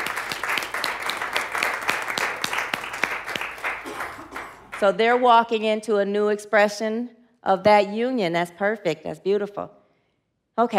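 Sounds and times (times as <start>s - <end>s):
audience applause: 0.0s - 4.8s
speech: 4.8s - 9.8s, 10.6s - 10.7s.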